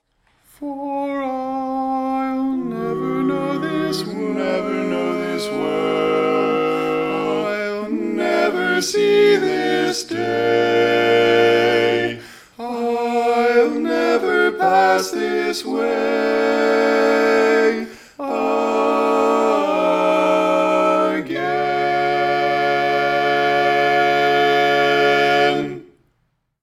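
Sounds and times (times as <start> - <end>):
barbershop tags all parts singing: 0.6 - 25.9.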